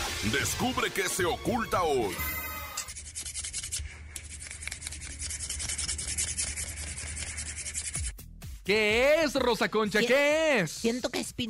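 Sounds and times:
speech: 0.2s - 2.4s, 8.7s - 11.4s
person scratching their armpit: 2.7s - 8.3s.

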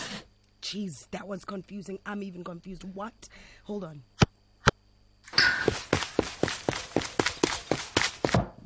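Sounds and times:
speech: 0.7s - 4.1s
running footsteps: 5.3s - 8.6s.

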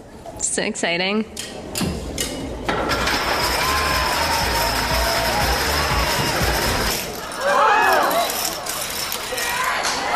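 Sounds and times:
speech: 0.6s - 1.6s
chain of falling dominoes: 2.9s - 10.0s.

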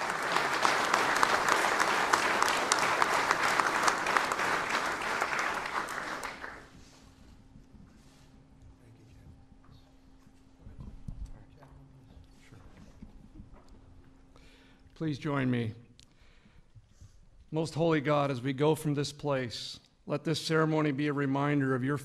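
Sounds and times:
ceremony audience applause: 0.0s - 6.8s
low steady hum: 0.0s - 20.1s
speech: 15.0s - 15.8s, 17.5s - 22.0s.

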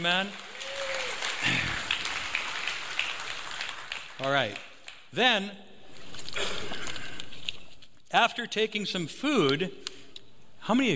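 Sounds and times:
speech: 0.0s - 0.5s, 4.2s - 5.7s, 8.1s - 9.8s, 10.6s - 10.9s
audience hand clapping: 0.0s - 5.1s.

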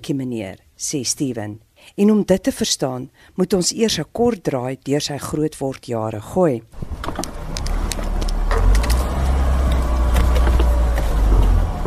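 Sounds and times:
speech: 0.0s - 7.2s
broadband road noise: 6.8s - 11.8s
car driving along a road, engine and tyre rumble: 6.8s - 11.8s.

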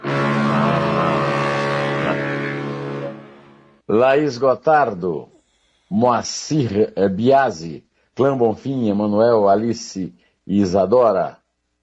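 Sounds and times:
deep loud ocean liner horn blast: 0.0s - 3.8s
speech: 3.9s - 5.3s, 5.9s - 11.4s.

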